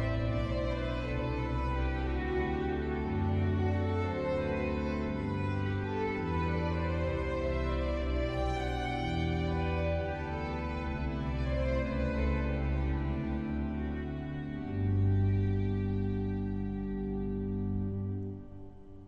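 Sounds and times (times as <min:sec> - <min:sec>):
violin for wedding processionals: 0:00.0 - 0:19.0.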